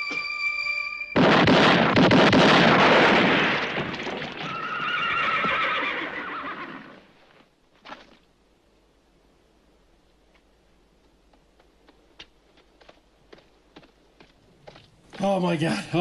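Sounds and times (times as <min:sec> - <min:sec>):
gunshot bang: 0:01.2 - 0:04.2
mule braying and whinnying: 0:04.4 - 0:07.1
speech: 0:15.4 - 0:15.9.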